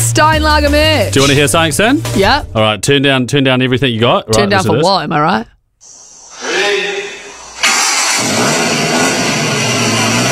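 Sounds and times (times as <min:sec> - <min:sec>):
speech: 0:00.2 - 0:05.5, 0:08.2 - 0:08.8
Suzuki Jimny engine roaring: 0:06.8 - 0:10.3
Suzuki Jimny starter motor whining: 0:07.6 - 0:10.3.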